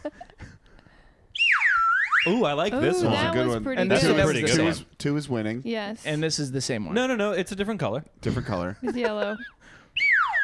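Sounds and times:
slide whistle being played: 1.3s - 2.6s, 10.0s - 10.4s
speech: 2.2s - 9.8s.

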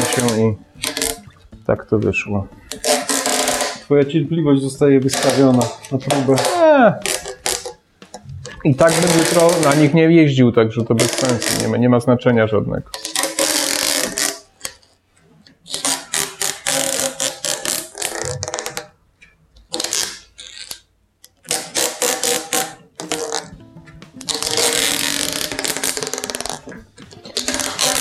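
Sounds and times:
adhesive tape being stuck: 0.0s - 1.3s, 2.7s - 3.9s, 5.1s - 9.9s, 11.0s - 11.7s, 12.9s - 15.0s, 15.7s - 18.9s, 19.7s - 23.6s, 24.2s - 27.9s
speech: 0.2s - 0.9s, 1.7s - 2.9s, 3.9s - 7.1s, 8.6s - 13.1s.

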